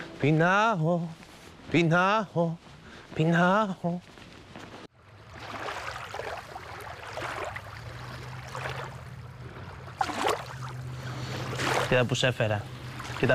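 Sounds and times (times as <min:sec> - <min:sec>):
speech: 0:00.2 - 0:04.2, 0:11.9 - 0:13.3
sea water lapping against boats: 0:04.9 - 0:13.3.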